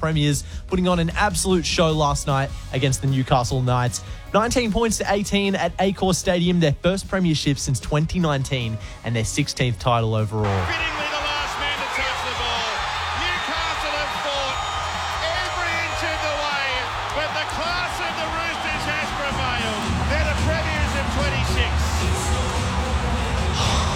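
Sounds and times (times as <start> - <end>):
speech: 0.0 - 11.0
stadium crowd cheering: 10.4 - 23.9.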